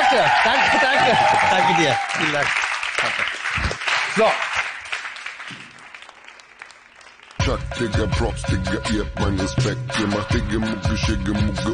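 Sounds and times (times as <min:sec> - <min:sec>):
audience applause: 0:00.0 - 0:07.4
speech: 0:00.2 - 0:04.6, 0:07.4 - 0:11.7.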